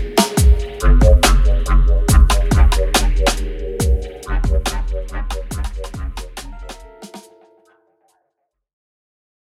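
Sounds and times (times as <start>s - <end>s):
bubble beat: 0.4s - 7.8s.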